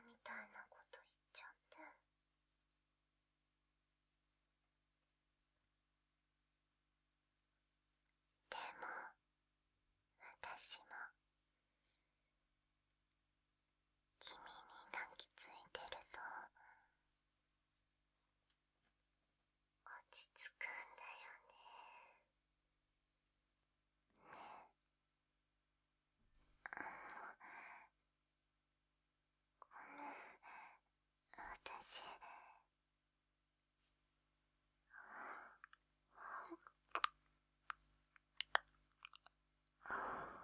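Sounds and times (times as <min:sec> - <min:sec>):
sweet ASMR whispering: 0:00.0 - 0:02.0, 0:08.5 - 0:09.2, 0:10.2 - 0:11.2, 0:14.2 - 0:16.9, 0:19.9 - 0:22.2, 0:24.2 - 0:24.7, 0:26.7 - 0:27.9, 0:29.6 - 0:32.6, 0:35.0 - 0:37.1
ASMR ear licking sounds in the right ear: 0:36.5 - 0:39.3.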